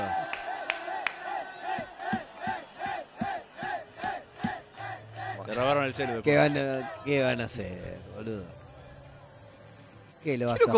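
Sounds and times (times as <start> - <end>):
crowd cheering and applauding: 0.0 - 6.6
speech: 5.5 - 8.6, 10.2 - 10.7.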